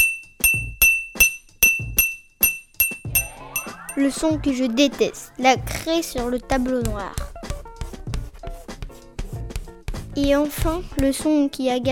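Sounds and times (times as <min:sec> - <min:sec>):
spoon clinking on plate: 0:00.0 - 0:04.0
speech: 0:04.0 - 0:07.4, 0:10.2 - 0:11.9.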